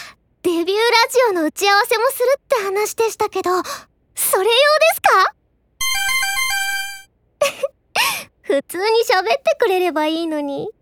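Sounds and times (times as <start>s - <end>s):
speech: 0.6s - 5.4s, 7.4s - 7.7s, 8.5s - 10.7s
phone message notification sound effect: 5.8s - 7.1s.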